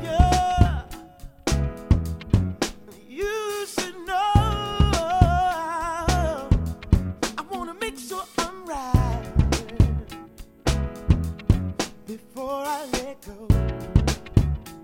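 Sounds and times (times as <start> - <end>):
pop band playing: 0.0 - 14.8.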